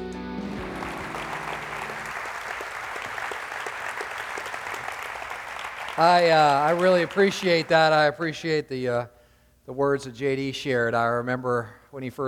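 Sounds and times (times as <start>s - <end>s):
church congregation at the Summit Church applauding to welcome a speaker: 0.4s - 8.2s
speech: 6.0s - 12.2s.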